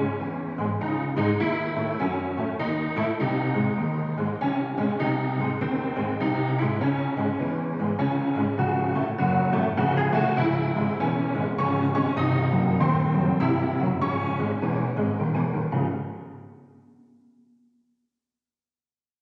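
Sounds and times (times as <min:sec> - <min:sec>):
creepy piano birthday song: 0:00.0 - 0:17.2.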